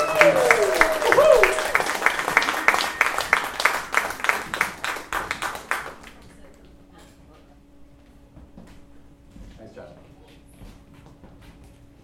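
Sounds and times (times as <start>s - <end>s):
whoops and cheers: 0.0s - 3.6s
audience round of applause: 0.0s - 6.6s.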